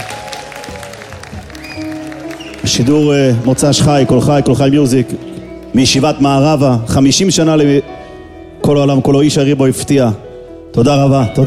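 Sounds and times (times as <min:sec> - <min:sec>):
crowd clapping: 0:00.0 - 0:06.0
speech: 0:02.6 - 0:07.9, 0:08.7 - 0:11.4.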